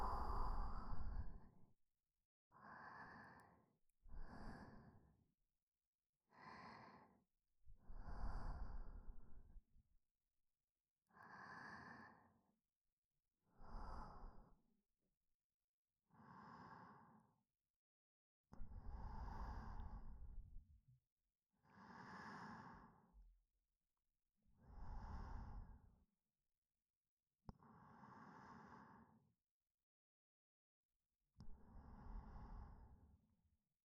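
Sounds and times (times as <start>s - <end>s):
breathing in the left ear: 0.0s - 1.7s, 2.5s - 5.2s, 6.2s - 9.6s, 11.0s - 12.6s, 13.4s - 14.7s, 16.1s - 17.4s, 18.6s - 20.6s, 21.6s - 23.4s, 24.6s - 26.0s, 27.5s - 29.4s, 31.4s - 33.2s.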